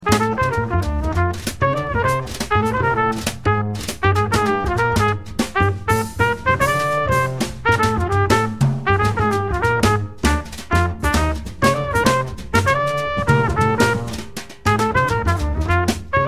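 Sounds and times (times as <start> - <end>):
quartet playing: 0.0 - 16.2.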